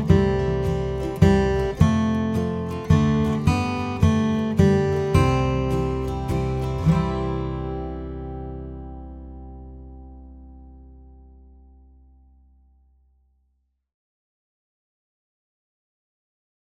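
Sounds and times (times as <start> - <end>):
guitar: 0.0 - 13.3.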